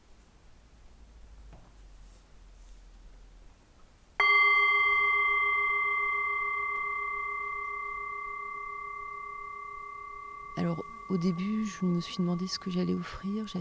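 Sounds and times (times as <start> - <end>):
Tibetan singing bowl ringing: 4.2 - 13.5
speech: 10.7 - 13.5.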